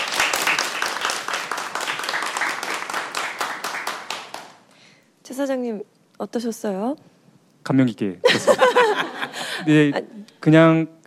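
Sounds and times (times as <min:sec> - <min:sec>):
audience applause: 0:00.0 - 0:04.6
speech: 0:05.3 - 0:11.0
laughter: 0:08.2 - 0:10.1.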